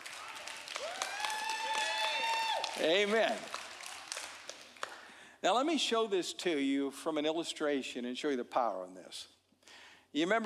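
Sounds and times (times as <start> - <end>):
weak scattered audience applause: 0.0 - 5.2
speech: 2.8 - 3.6, 5.4 - 9.4, 10.1 - 10.4.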